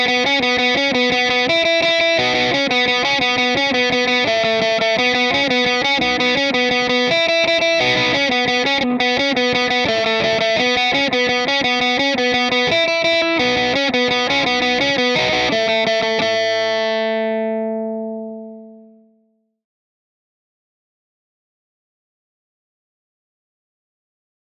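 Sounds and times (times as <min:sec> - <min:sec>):
guitar playing at 171 bpm: 0:00.0 - 0:19.2.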